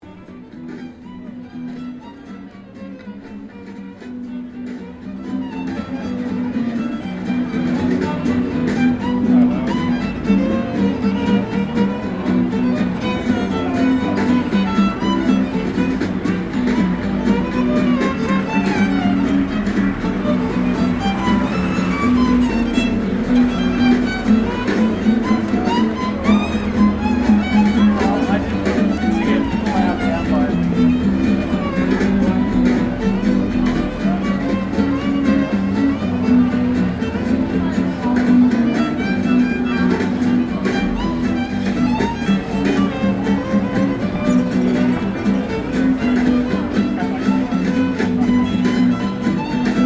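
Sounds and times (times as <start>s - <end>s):
busker playing violin in Melbourne: 0.0s - 49.8s.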